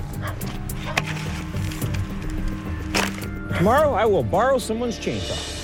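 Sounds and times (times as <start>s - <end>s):
kindling wood being split: 0.4s - 3.4s
speech: 3.6s - 5.5s.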